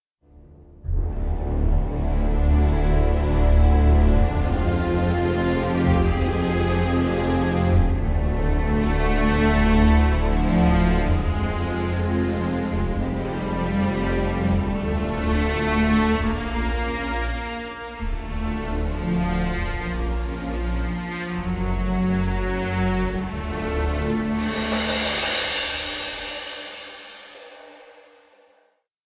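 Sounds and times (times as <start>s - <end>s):
idle music: 0.2s - 28.8s.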